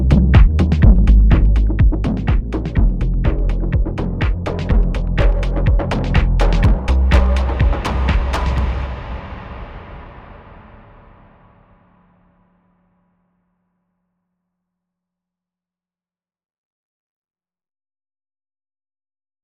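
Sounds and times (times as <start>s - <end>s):
music beat: 0.0s - 9.5s.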